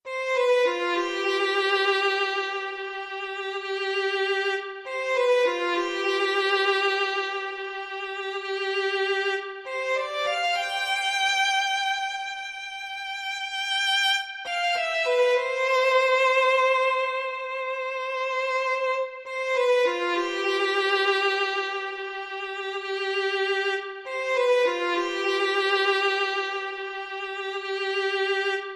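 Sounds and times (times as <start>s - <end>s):
violin only: 0.0s - 28.7s.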